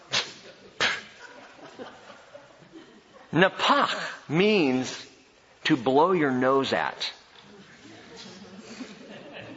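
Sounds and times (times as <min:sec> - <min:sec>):
voice imitating a disdainful sniff: 0:00.0 - 0:01.2
laughter: 0:00.2 - 0:04.2, 0:07.8 - 0:09.5
speech: 0:03.3 - 0:05.1, 0:05.7 - 0:07.2.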